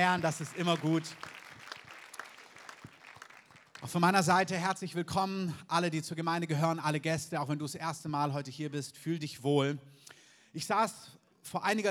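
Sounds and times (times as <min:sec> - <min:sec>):
speech: 0:00.0 - 0:01.4, 0:03.8 - 0:11.8
crowd applauding: 0:00.0 - 0:04.3.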